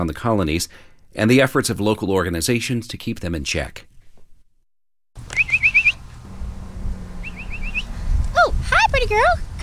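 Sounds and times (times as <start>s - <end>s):
speech: 0.0s - 3.9s, 9.0s - 9.5s
person whistling to call stray and feral cats: 5.3s - 6.0s, 7.2s - 7.9s.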